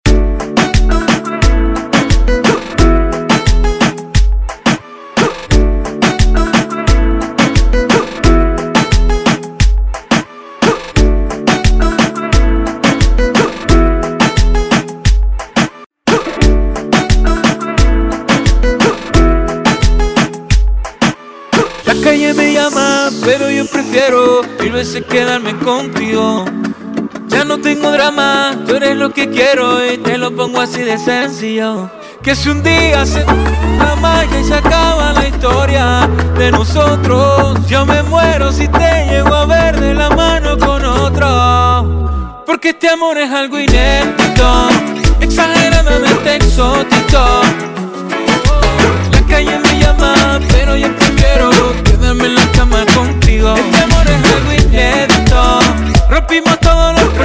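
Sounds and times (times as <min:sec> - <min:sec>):
reggaeton intro music: 0:00.1 - 0:57.2.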